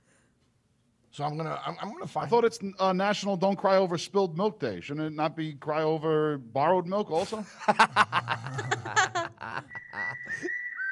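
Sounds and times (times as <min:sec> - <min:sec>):
speech: 0:01.2 - 0:08.9
laughter: 0:07.4 - 0:10.5
high-pitched whistle: 0:09.7 - 0:10.9.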